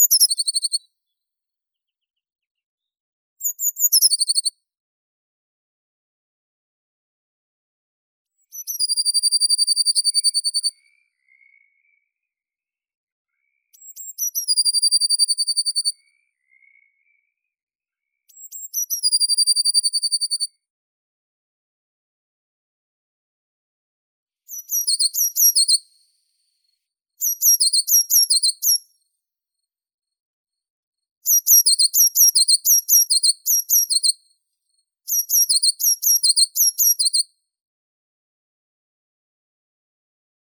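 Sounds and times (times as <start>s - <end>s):
blue tit Cyanistes caeruleus: 0.0s - 0.9s, 3.4s - 4.5s, 8.4s - 12.1s, 13.4s - 17.3s, 18.3s - 20.5s, 24.5s - 26.0s, 27.2s - 29.0s, 31.2s - 34.2s, 35.1s - 37.3s.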